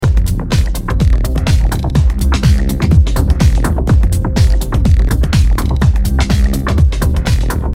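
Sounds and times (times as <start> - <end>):
music loop: 0.0 - 7.7.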